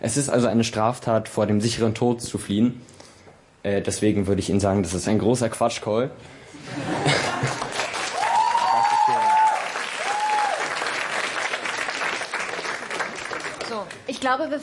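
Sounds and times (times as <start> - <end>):
speech: 0.0 - 3.0, 3.6 - 7.6, 14.2 - 14.6
laughter: 6.6 - 7.9
audience applauding: 7.1 - 14.1
whistles or whoops: 8.2 - 10.7.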